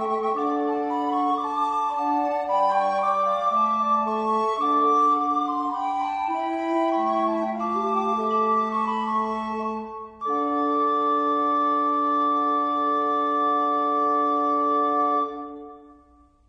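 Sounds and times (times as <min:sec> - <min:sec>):
recorder playing a canzona: 0:00.0 - 0:16.3.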